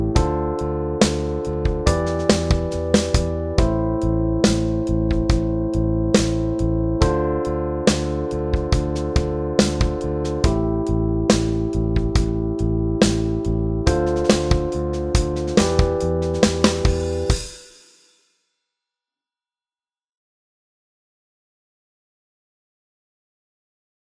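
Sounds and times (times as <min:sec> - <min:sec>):
A minor pentatonic backing track: 0:00.0 - 0:17.6.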